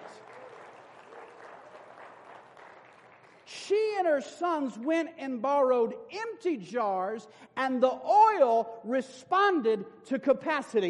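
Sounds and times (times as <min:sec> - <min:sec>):
audience applauding in praise: 0:00.0 - 0:03.5
speech: 0:03.7 - 0:10.8.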